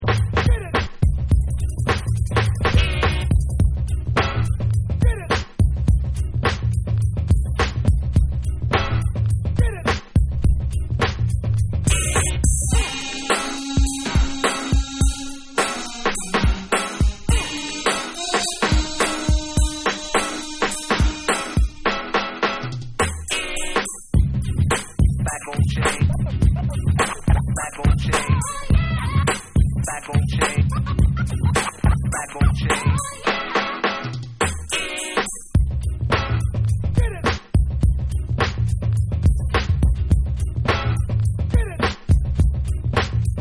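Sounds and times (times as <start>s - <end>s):
instrumental music: 0.0s - 43.3s
laughter: 25.5s - 28.3s, 30.2s - 32.9s.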